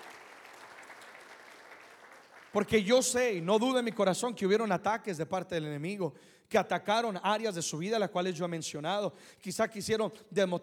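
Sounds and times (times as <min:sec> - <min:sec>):
audience applause: 0:00.0 - 0:03.1
speech: 0:02.5 - 0:10.6.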